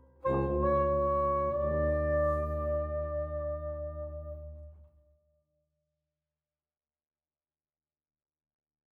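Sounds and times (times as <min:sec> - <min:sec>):
waltz music: 0:00.2 - 0:04.6.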